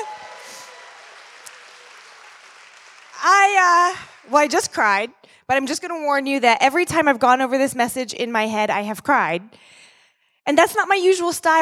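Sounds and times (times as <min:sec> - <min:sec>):
audience applause: 0:00.0 - 0:04.5
speech: 0:03.2 - 0:09.8, 0:10.4 - 0:11.5.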